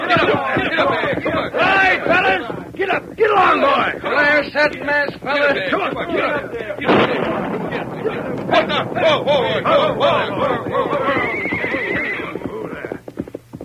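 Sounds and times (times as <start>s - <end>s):
hooves clattering: 0.0s - 13.6s
speech: 0.1s - 11.0s
booming burst: 6.8s - 12.5s
horses whinnying: 8.0s - 13.0s.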